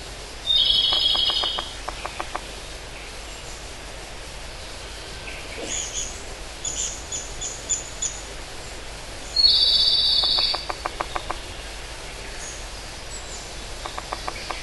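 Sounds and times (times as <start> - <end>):
pygmy woodpecker giving a harsh, buzzy call: 0.5 - 2.5, 9.3 - 11.5, 13.8 - 14.6.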